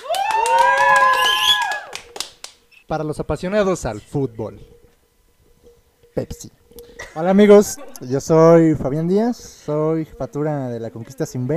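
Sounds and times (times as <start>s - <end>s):
applause: 0.0s - 2.6s
speech: 2.9s - 4.8s, 6.2s - 6.6s, 7.2s - 11.5s.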